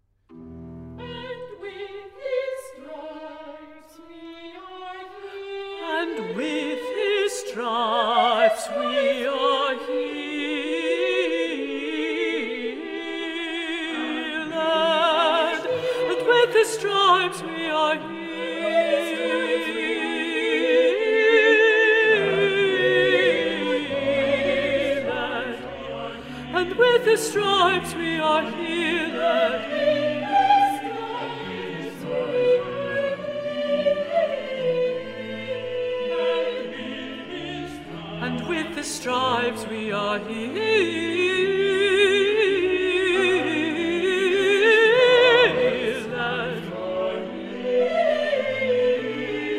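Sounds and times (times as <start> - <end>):
contraltos singing: 0.9 - 49.5.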